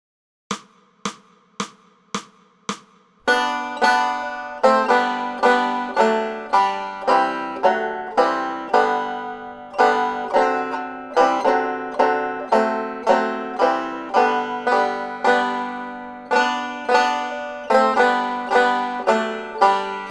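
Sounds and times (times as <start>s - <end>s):
banjo: 3.3s - 20.1s.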